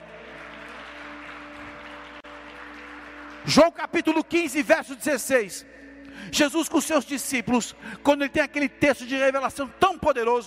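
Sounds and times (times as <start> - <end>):
audience applauding: 0.0 - 4.4
speech: 3.4 - 10.4.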